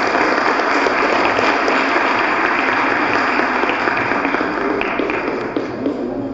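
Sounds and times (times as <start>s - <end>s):
audience applause: 0.0s - 6.2s.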